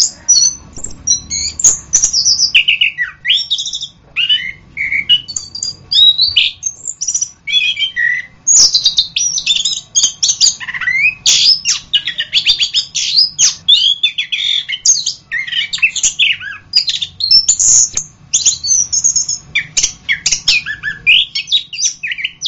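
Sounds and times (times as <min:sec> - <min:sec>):
Orange-headed thrush whistled song: 0:00.0 - 0:22.4
faint hum: 0:00.0 - 0:22.4.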